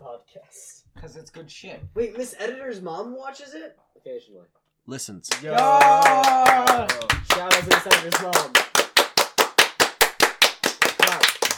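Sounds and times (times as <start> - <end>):
speech: 0.4 - 8.8
clap track sound effect: 5.3 - 11.5.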